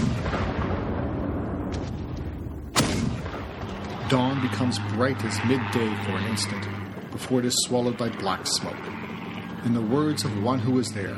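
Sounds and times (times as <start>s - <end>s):
exploding bombs and artillery shells: 0.0s - 5.6s
speech: 4.1s - 11.1s.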